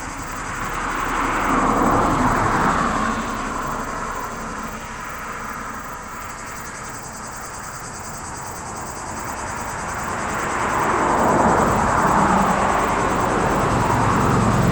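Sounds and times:
cicada song at a roadside in Chindrieux France on a hot sunny day: 0.0s - 14.7s.

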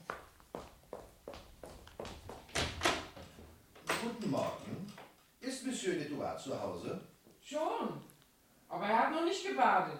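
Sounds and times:
footsteps: 0.0s - 3.6s
door opening: 2.5s - 5.1s
speech: 4.0s - 5.0s, 5.6s - 8.1s, 8.7s - 9.9s.

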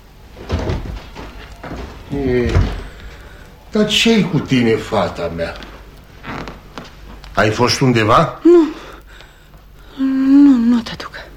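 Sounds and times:
dull wooden thuds of a house door: 0.3s - 3.2s
house door clunk: 0.4s - 3.0s
brief tonal creak of a house door: 0.4s - 3.1s, 6.2s - 6.9s
speech: 2.1s - 2.8s, 3.7s - 5.7s, 7.4s - 8.7s.

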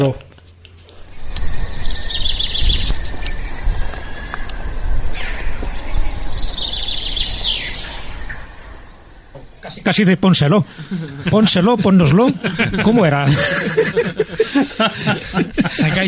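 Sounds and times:
speech: 0.0s - 0.3s, 9.8s - 16.0s
frogs calling while mating: 0.9s - 11.9s
laughter: 10.6s - 16.0s.

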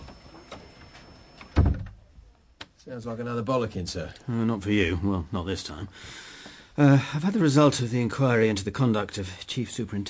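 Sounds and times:
door shutting thud: 1.4s - 2.0s
speech: 2.8s - 10.0s.

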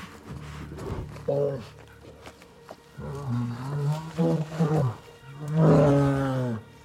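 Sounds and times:
bear growling and roaring on a forest slope: 0.7s - 2.2s, 2.9s - 6.8s.

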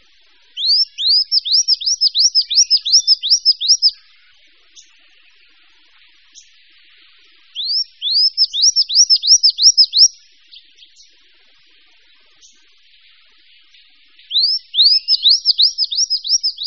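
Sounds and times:
bird whistled song: 0.5s - 4.1s, 7.5s - 11.1s, 14.2s - 16.6s.

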